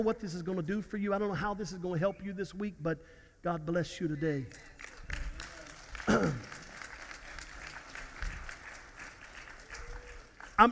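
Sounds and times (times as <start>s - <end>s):
speech: 0.0s - 4.9s, 6.1s - 6.5s, 10.6s - 10.7s
audience applauding: 4.5s - 10.7s.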